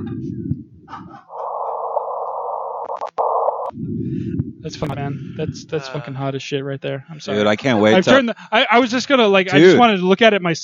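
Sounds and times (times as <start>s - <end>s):
gravitational waves converted into sound as low rumble and buzzing drone: 0.0s - 6.1s
speech: 3.7s - 10.6s.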